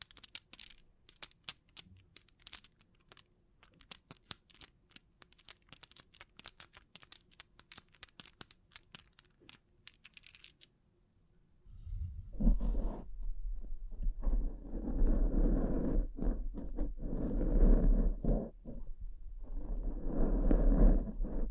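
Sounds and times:
rapid bright clicks and taps: 0.0 - 10.7
louder heavier rustling and scraping: 11.7 - 18.8
low rumble: 11.7 - 21.4.

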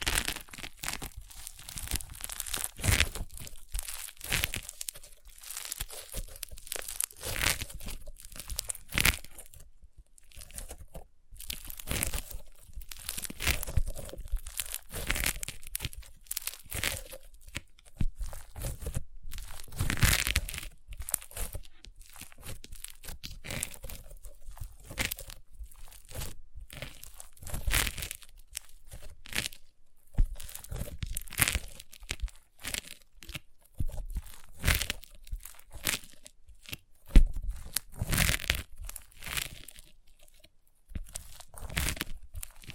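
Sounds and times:
crunchy slime crackling as it is squeezed and pressed: 0.0 - 42.7.

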